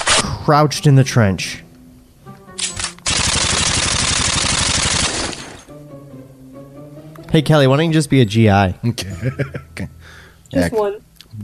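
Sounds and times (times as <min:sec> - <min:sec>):
speech: 0:00.5 - 0:01.6, 0:07.3 - 0:11.4
machine-gun fire sound effect for a trench battle: 0:02.6 - 0:05.7
artillery fire sound effect: 0:03.1 - 0:05.6
laughter: 0:08.8 - 0:09.9.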